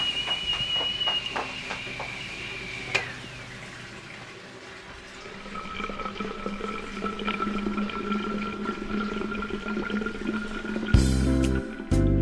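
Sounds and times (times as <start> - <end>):
kettle whistling: 0.0 - 12.0
boiling water poured into a thermos: 2.2 - 12.1.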